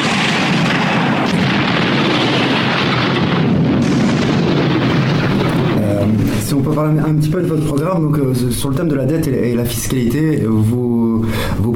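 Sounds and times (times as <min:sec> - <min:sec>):
bombs dropped from a plane exploding: 0:00.0 - 0:08.3
speech: 0:06.7 - 0:11.7.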